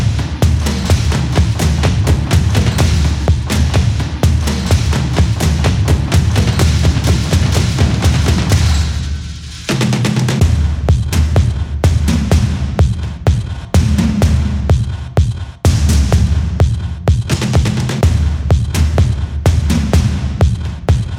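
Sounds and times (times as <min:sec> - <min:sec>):
percussion: 0:00.0 - 0:21.1.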